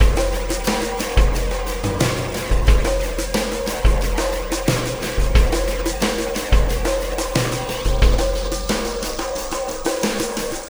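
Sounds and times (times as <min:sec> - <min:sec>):
rippling percussion: 0:00.0 - 0:10.6.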